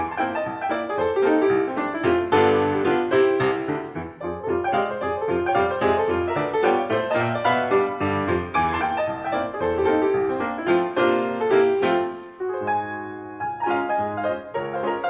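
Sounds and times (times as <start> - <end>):
solo piano: 0.0 - 15.0.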